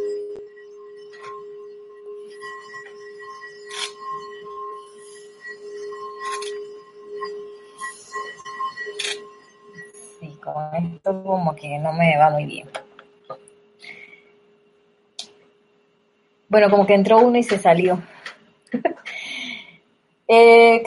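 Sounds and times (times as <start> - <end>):
bowl being struck and ringing: 0.0 - 14.2
speech: 10.7 - 12.8, 16.5 - 18.1, 20.3 - 20.8
laughter: 18.7 - 19.2.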